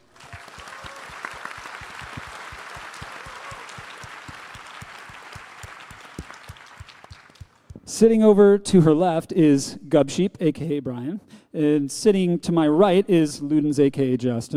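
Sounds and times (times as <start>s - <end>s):
audience applause: 0.0s - 7.7s
speech: 8.0s - 14.5s.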